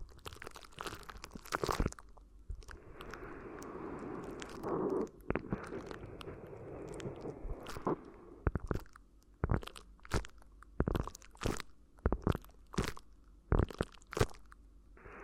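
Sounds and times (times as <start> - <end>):
crinkly ear massage crunching and crackling: 0.0 - 14.6.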